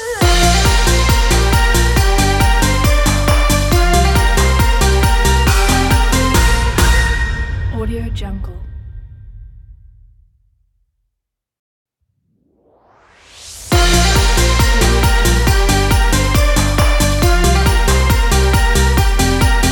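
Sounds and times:
Chinese New Year party logo jingle: 0:00.2 - 0:07.8, 0:13.7 - 0:19.7.

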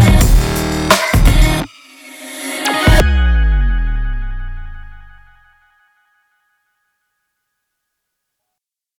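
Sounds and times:
dirt electro sport big beat music: 0:00.0 - 0:05.4.

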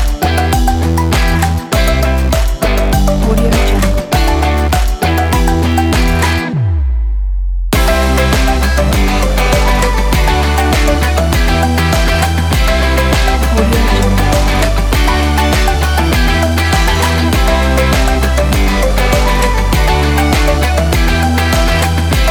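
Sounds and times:
upbeat pop music: 0:00.0 - 0:06.9, 0:07.8 - 0:22.2.

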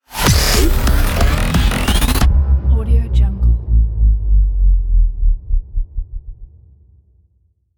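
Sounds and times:
cinematic rising stutter: 0:00.1 - 0:02.8, 0:03.4 - 0:06.5.

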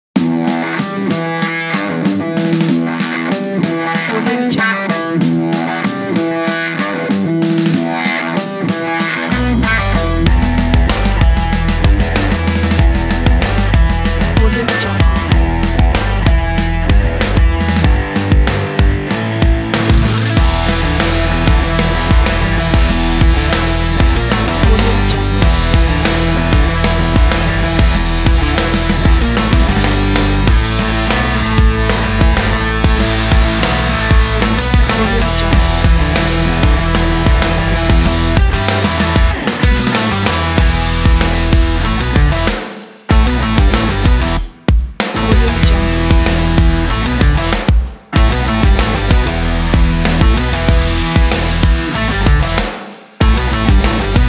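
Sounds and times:
rock music: 0:00.0 - 0:54.2.

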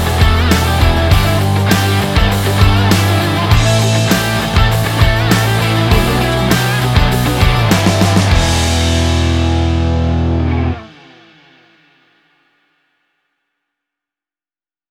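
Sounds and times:
energetic action rock music: 0:00.0 - 0:11.8.

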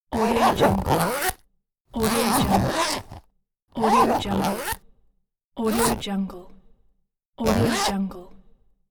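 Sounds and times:
zipper on a small box: 0:00.1 - 0:04.8, 0:05.7 - 0:06.1, 0:07.4 - 0:08.0.

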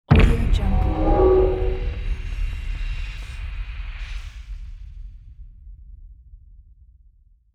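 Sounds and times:
epic movie trailer cinematic organic hybrid drum impact hit: 0:00.1 - 0:02.7.

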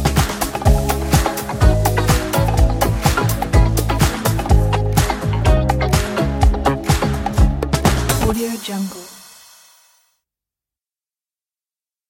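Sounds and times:
vintage bass: 0:00.0 - 0:08.4.

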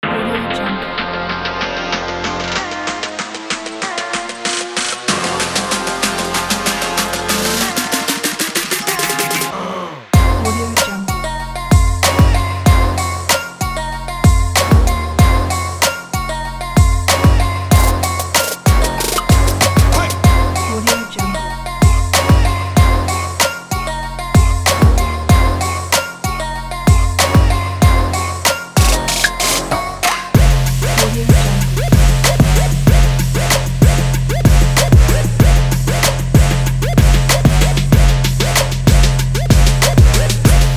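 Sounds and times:
energetic sport trap music: 0:00.0 - 0:40.7.

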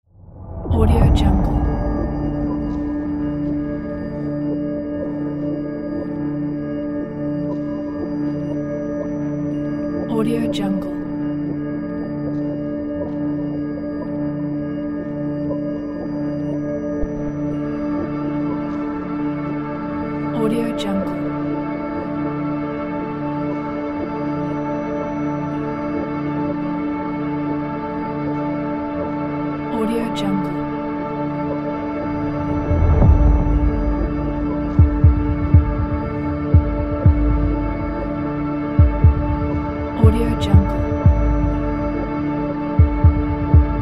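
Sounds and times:
strange drone: 0:00.1 - 0:43.8.

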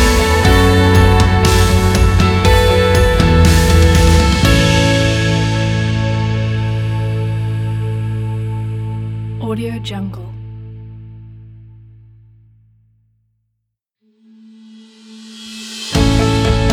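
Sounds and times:
motivational inspiring music: 0:00.0 - 0:10.2, 0:15.8 - 0:16.7.

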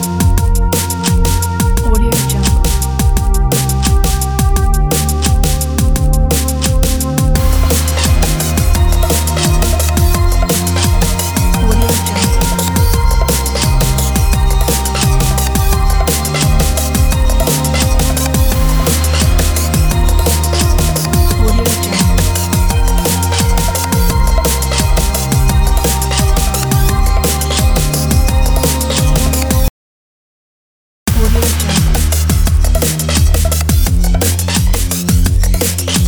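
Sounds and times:
energetic atmospheric futuristic drum and bass music: 0:00.0 - 0:29.7, 0:31.1 - 0:36.0.

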